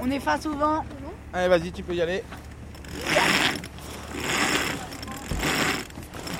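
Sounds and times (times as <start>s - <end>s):
speech: 0.1s - 3.4s, 4.1s - 4.4s
mainsail being hoisted by pulling lines: 2.2s - 6.3s.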